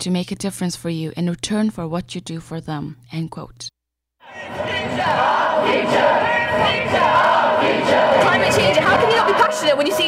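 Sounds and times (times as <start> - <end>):
speech: 0.0 - 3.8, 4.4 - 10.0
UK school students chanting at a climate change protest march: 4.2 - 10.0.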